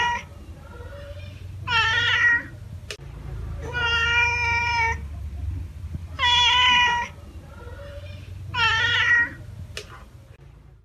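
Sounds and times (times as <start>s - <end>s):
domestic cat giving drawn-out meows: 0.0s - 2.6s, 3.6s - 5.0s, 6.1s - 9.4s.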